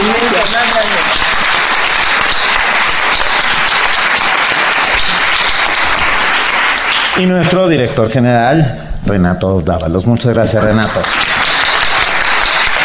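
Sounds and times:
large audience applause: 0.0 - 7.9, 10.6 - 12.8
speech: 7.2 - 11.4.

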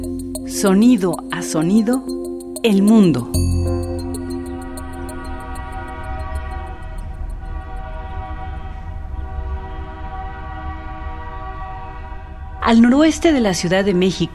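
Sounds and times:
speech: 0.6 - 3.5, 12.7 - 14.3
train rumbling: 4.0 - 14.3
train horn blast: 4.1 - 13.2.

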